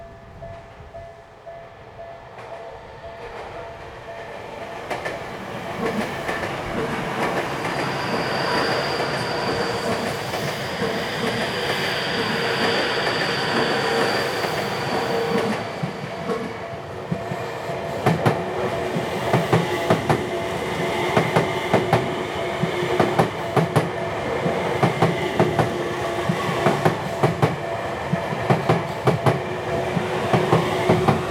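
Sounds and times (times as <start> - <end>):
train: 0.0 - 31.2.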